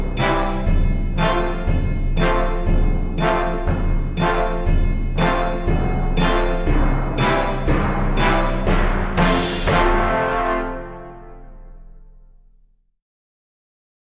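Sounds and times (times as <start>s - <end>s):
percussion: 0.0s - 11.2s.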